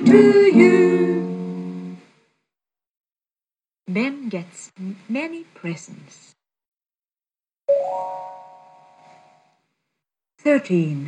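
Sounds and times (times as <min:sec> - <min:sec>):
speech: 0:00.0 - 0:00.8, 0:03.9 - 0:06.4, 0:07.8 - 0:08.4, 0:10.4 - 0:11.0
doorbell ringing: 0:07.7 - 0:09.5.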